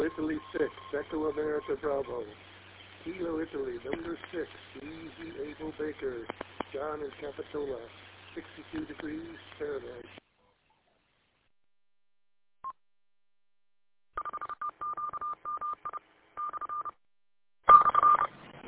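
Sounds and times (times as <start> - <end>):
speech: 0.2 - 10.2
telephone dialing tones: 14.2 - 17.0, 17.7 - 18.3.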